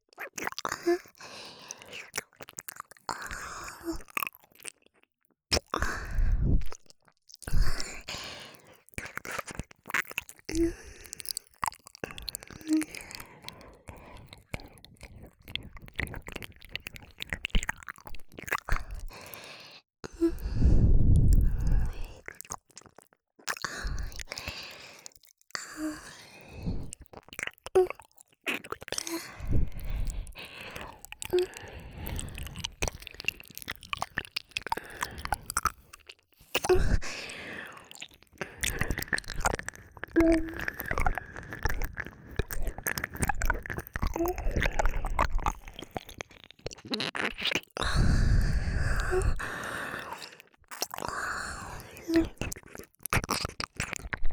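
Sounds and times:
ASMR ear licking in the right ear: 0.2s - 54.3s.

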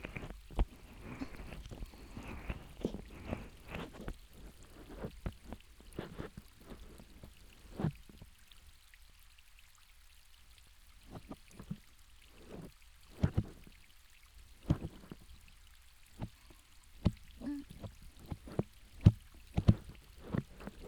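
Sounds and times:
ASMR ear massage sounds: 0.0s - 8.2s, 12.4s - 13.6s, 14.6s - 15.2s, 17.0s - 20.8s.

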